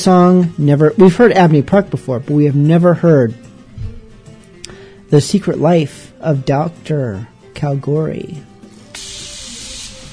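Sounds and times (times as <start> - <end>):
speech: 0.0 - 3.5, 5.1 - 8.5
steam hissing: 8.9 - 10.1.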